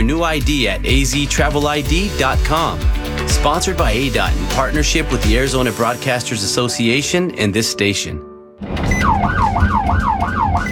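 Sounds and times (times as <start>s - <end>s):
speech: 0.1s - 8.3s
Arizona Department of Public Safety police siren wailing during a traffic stop: 9.0s - 10.7s.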